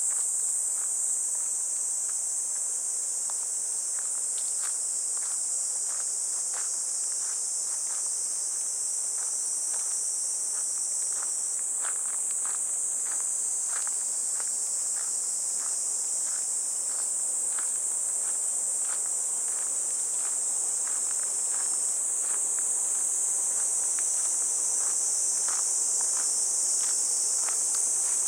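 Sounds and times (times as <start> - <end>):
cicadas buzzing: 0.0 - 28.2
footsteps on a path: 0.0 - 28.2.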